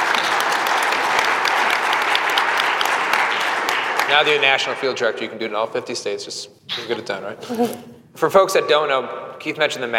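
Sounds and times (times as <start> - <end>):
audience applause: 0.0 - 5.0
speech: 4.1 - 9.9.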